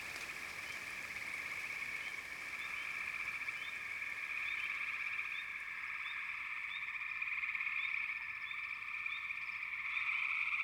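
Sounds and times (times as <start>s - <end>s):
frogs calling in chorus: 0.0s - 10.5s.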